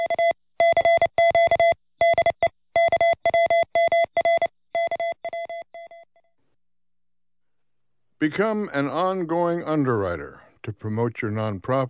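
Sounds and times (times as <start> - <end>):
Morse code transmission beeps: 0.0 - 6.1
speech: 8.2 - 11.8.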